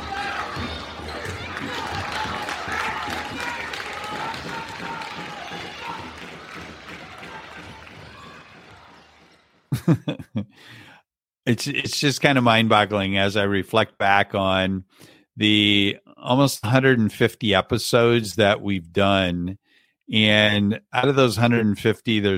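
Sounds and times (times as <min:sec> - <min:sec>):
round of applause: 0:00.0 - 0:09.8
laughter: 0:09.7 - 0:10.6
speech: 0:09.9 - 0:22.3.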